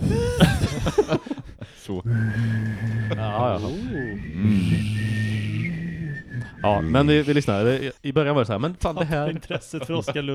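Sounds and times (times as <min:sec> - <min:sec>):
laughter: 0:00.0 - 0:07.9, 0:08.9 - 0:10.3
speech: 0:00.1 - 0:01.1, 0:01.9 - 0:05.6, 0:06.6 - 0:10.3
person humming a steady low note: 0:02.0 - 0:07.8
person whistling a thin higher tone: 0:02.1 - 0:07.7.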